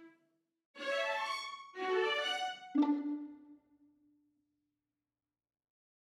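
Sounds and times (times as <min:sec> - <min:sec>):
violins playing: 0:00.8 - 0:03.4.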